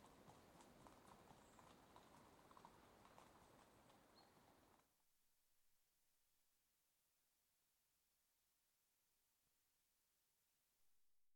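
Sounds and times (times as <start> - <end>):
two horses trotting and walking on gravelly track: 0.0 - 4.6.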